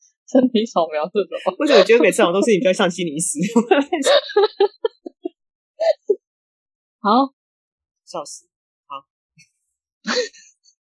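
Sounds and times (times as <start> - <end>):
speech: 0.3 - 4.9, 7.0 - 7.4, 8.1 - 9.1
laughter: 1.3 - 6.2
person coughing: 1.4 - 2.0, 4.1 - 4.7.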